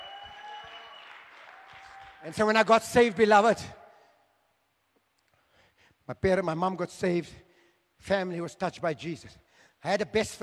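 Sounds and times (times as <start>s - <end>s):
audience hand clapping: 0.0s - 2.6s
speech: 2.2s - 3.8s, 6.1s - 7.4s, 8.0s - 10.4s.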